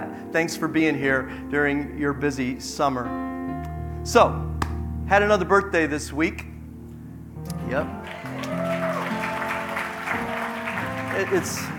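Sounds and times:
speech: 0.3s - 3.3s, 4.0s - 4.5s, 5.1s - 6.5s, 7.7s - 8.2s, 11.2s - 11.7s
audience clapping: 8.0s - 11.7s.

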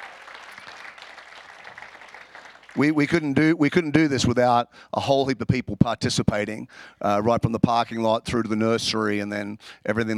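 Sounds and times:
church congregation applauding volunteers: 0.0s - 3.4s
speech: 2.8s - 10.1s.

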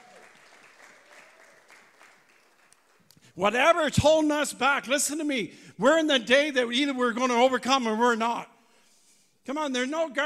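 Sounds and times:
audience applause: 0.0s - 3.0s
speech: 3.4s - 8.5s, 9.5s - 10.2s.

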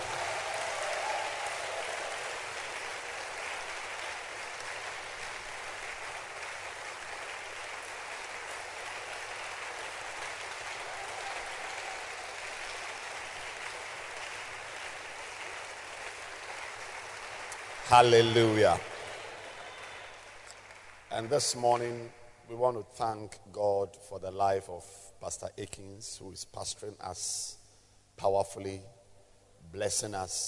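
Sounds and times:
audience clapping: 0.0s - 22.1s
speech: 17.9s - 18.9s, 21.2s - 27.6s, 28.2s - 29.0s, 29.6s - 30.4s.

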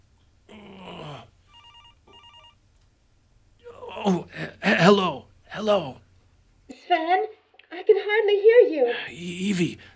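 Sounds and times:
cell phone ringing on the floor: 1.4s - 2.6s
speech: 4.0s - 6.0s, 8.3s - 9.9s.

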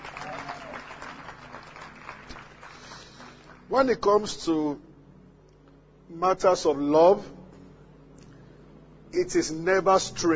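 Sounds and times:
church audience applauding after a drama performance: 0.0s - 3.6s
speech: 3.7s - 4.9s, 6.1s - 7.4s, 9.2s - 10.3s.

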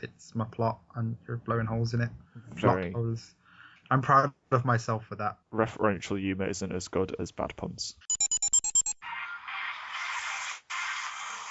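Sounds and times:
speech: 0.0s - 8.1s
phone playing a tinny advert: 7.8s - 11.4s
bright electronic beeps from a phone: 8.1s - 9.0s.

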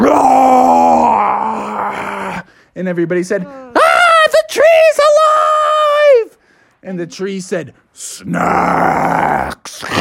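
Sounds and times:
voice imitating a giant roar: 0.0s - 2.5s, 8.2s - 10.0s
speech: 2.8s - 5.2s, 6.8s - 10.0s.

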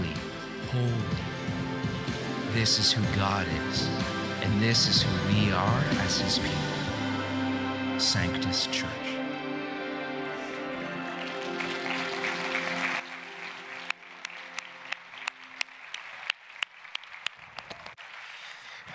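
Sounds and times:
music: 0.0s - 17.0s
speech: 0.7s - 1.3s, 2.6s - 6.7s, 8.0s - 9.1s
scattered audience claps: 10.5s - 18.9s.

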